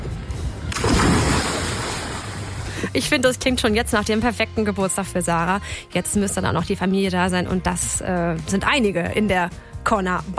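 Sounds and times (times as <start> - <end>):
open-sea waves surging: 0.7 - 2.8
speech: 2.9 - 10.3.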